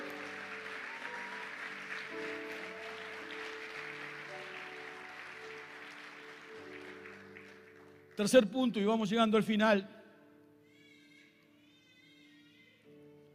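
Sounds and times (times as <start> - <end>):
audience applauding: 0.0 - 8.5
speech: 8.2 - 10.0.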